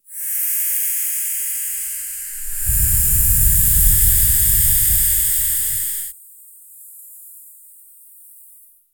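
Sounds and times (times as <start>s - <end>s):
air magic whoosh: 2.3s - 6.1s.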